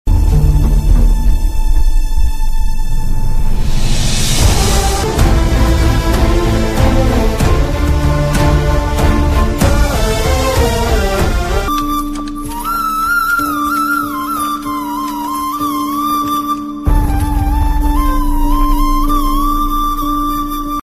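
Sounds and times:
heart touching Telugu background music: 0.1 - 20.8.

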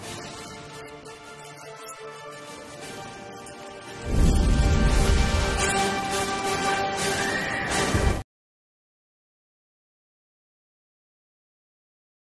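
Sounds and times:
trailer background music ringtone: 0.0 - 8.2.

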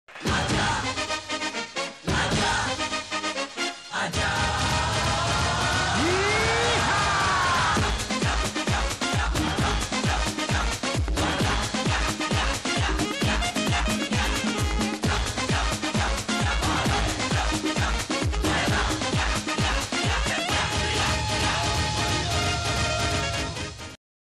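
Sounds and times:
comedy background music: 0.1 - 24.0.

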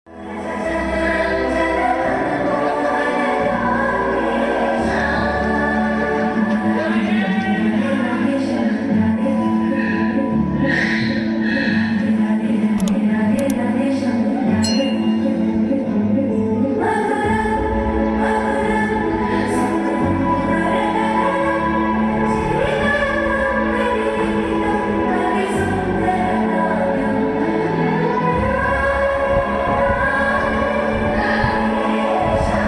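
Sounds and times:
climax background music ringtone: 0.1 - 32.6.

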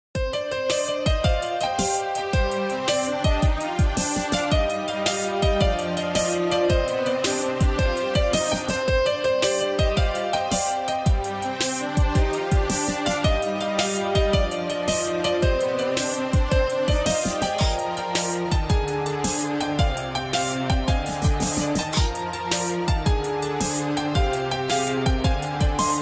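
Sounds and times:
instrumental background music: 0.2 - 25.9.

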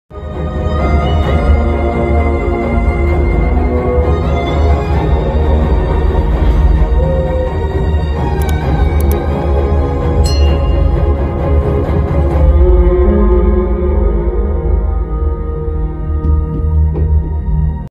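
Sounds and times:
sad movie background music about death: 0.2 - 17.8.

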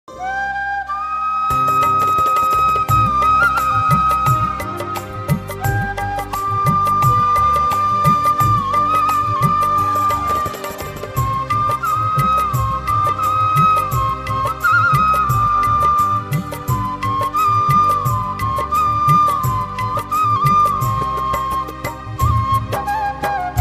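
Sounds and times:
bansuri flute ringtone: 0.1 - 23.6.

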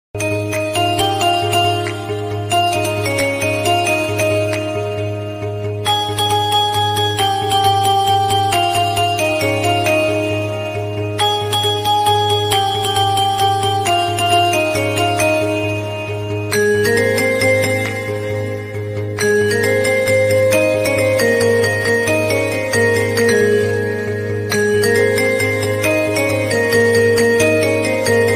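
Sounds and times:
instrumental music: 0.2 - 28.3.

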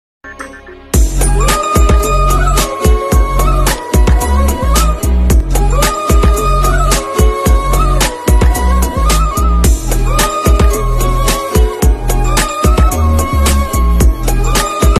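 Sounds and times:
love background music ringtone: 0.2 - 14.9.

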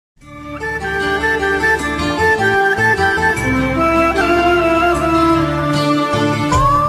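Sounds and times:
flute ringtone: 0.6 - 6.8.

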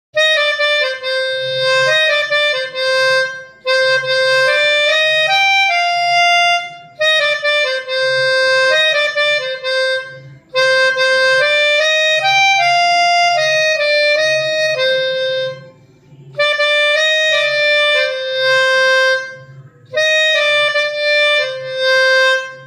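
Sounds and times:
short melodica cover: 0.2 - 22.6.

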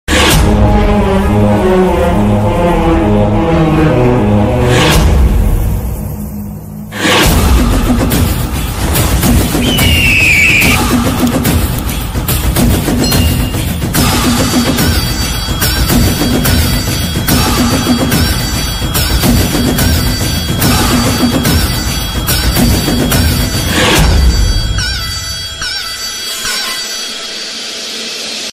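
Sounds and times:
background music: 0.1 - 28.5.

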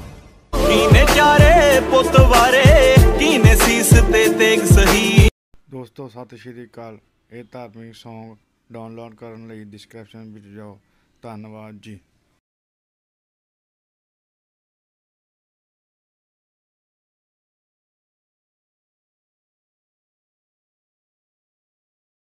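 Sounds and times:
Punjabi devotional song ringtone: 0.6 - 5.3.

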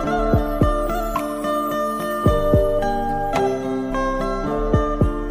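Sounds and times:
instrumental lo-fi banjo ringtone: 0.1 - 5.1.

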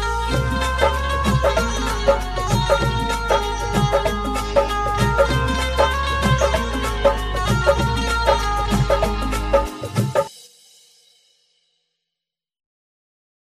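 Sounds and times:
banjo playing a Marathi Diwali song: 0.0 - 10.3.

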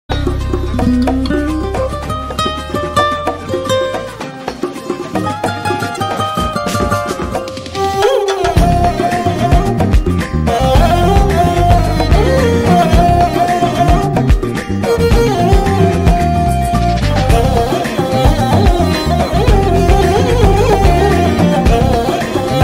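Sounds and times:
violin background music: 0.1 - 22.6.

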